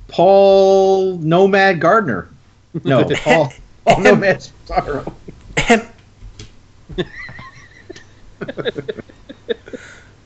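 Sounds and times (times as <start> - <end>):
speech: 0.2 - 5.9, 7.0 - 7.4, 8.4 - 9.9
laughter: 2.8 - 5.4, 6.9 - 10.0
throat clearing: 5.0 - 5.9.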